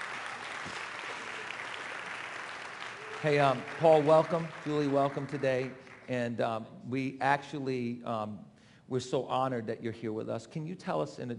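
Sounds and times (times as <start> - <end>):
audience applauding in a church: 0.0 - 6.2
speech: 3.2 - 11.3.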